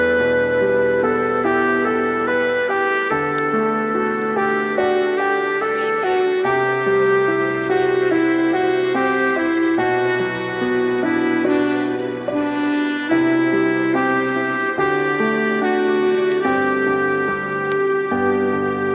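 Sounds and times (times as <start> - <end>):
relaxing Christmas on-hold music: 0.0 - 18.9.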